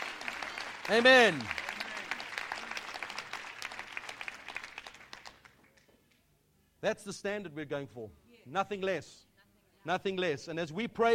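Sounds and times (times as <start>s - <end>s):
audience applause: 0.0s - 5.8s
speech: 0.9s - 1.6s, 6.8s - 11.1s.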